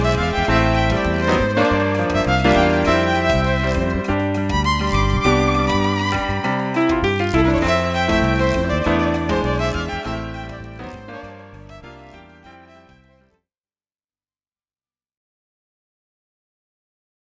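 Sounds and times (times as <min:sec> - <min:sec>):
drum rhythm loop: 0:00.0 - 0:12.4
violin: 0:00.0 - 0:13.2
keyboard with drum patch: 0:00.0 - 0:13.3.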